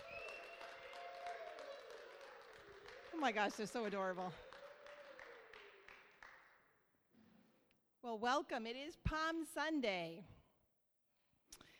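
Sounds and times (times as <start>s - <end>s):
audience applauding: 0.0s - 6.5s
speech: 3.1s - 4.5s, 8.1s - 10.4s.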